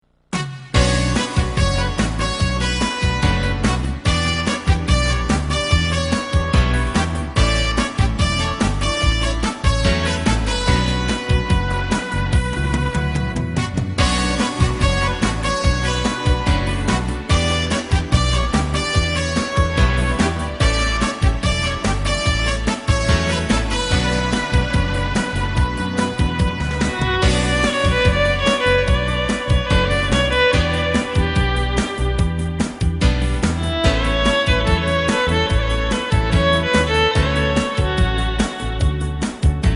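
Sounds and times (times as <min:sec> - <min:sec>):
violin: 0:00.8 - 0:39.7.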